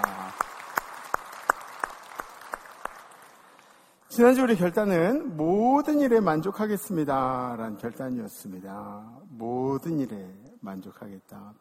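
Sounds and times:
audience clapping in rhythm: 0.0 - 4.1
speech: 4.2 - 11.6.

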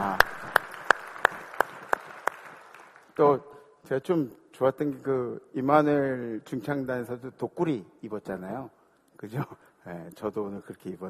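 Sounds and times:
congregation crisp claps in praise: 0.0 - 3.2
scattered applause: 0.0 - 3.2
speech: 3.2 - 11.0.

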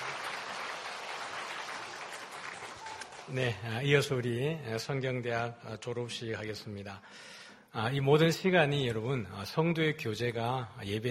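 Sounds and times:
audience applause: 0.0 - 3.6
speech: 3.3 - 11.0.

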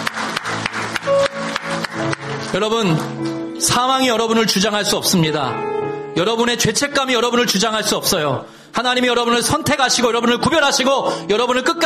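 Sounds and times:
church congregation clapping in praise during worship: 0.0 - 3.6, 8.7 - 10.1
speech: 2.5 - 11.8.

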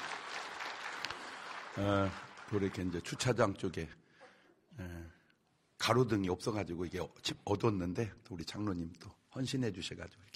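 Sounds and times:
sharp claps: 0.0 - 3.0
church congregation clapping to thank volunteers: 0.0 - 3.6
speech: 1.8 - 4.0, 4.8 - 5.2, 5.8 - 10.3.

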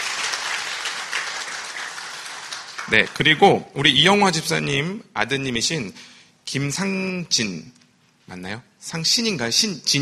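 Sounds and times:
church congregation applauding a visiting missionary: 0.0 - 3.6
speech: 2.9 - 9.9.

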